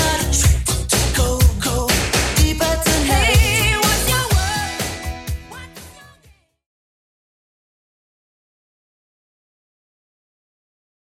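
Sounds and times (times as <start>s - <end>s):
1980s-style music at 124 BPM: 0.0s - 6.3s.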